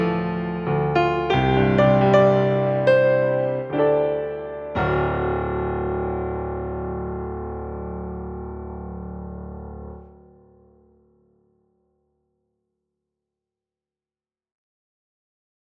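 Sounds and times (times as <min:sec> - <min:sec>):
piano: 0:00.0 - 0:12.2.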